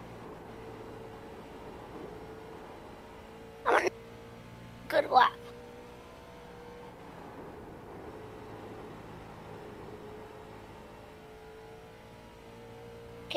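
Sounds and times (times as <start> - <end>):
race car engine in the iRacing simulator: 0.0 - 13.3
speech: 4.9 - 5.4.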